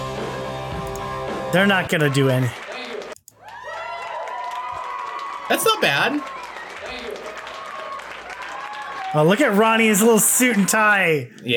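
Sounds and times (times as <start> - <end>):
music: 0.0 - 1.7
speech: 1.5 - 2.6, 5.5 - 6.4, 9.1 - 11.5
large crowd cheering: 1.5 - 11.1.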